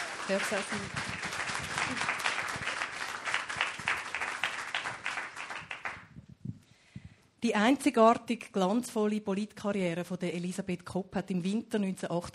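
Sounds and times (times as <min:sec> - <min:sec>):
audience applause: 0:00.0 - 0:06.1
speech: 0:00.3 - 0:01.2, 0:01.9 - 0:02.1, 0:07.4 - 0:12.3.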